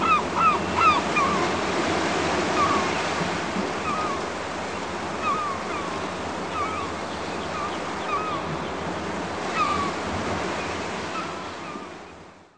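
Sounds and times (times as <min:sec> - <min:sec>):
quiet beach ambience: 0:00.0 - 0:12.5.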